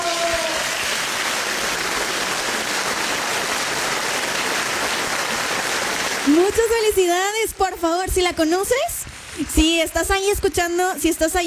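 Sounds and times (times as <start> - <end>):
applause: 0.0 - 7.1
speech: 6.3 - 11.4.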